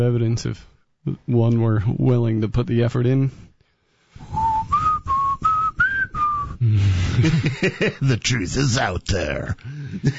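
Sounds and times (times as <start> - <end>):
speech: 0.0 - 3.5, 6.6 - 10.1
person whistling a tune: 4.2 - 6.7
laughter: 6.9 - 8.1.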